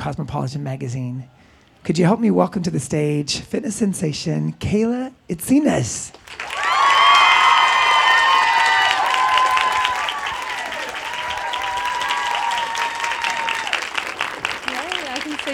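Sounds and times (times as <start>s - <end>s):
speech: 0.0s - 6.5s
audience applause: 6.2s - 15.5s.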